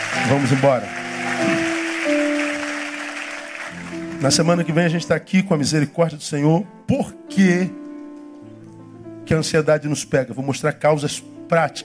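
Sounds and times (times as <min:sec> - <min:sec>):
audience applause: 0:00.0 - 0:04.6
speech: 0:00.2 - 0:01.6, 0:04.2 - 0:07.8, 0:09.3 - 0:11.8.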